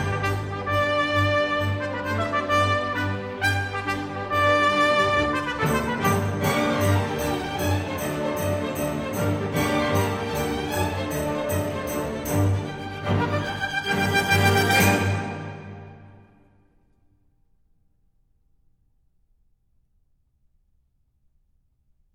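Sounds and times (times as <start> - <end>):
solo trumpet: 0.0 - 16.4.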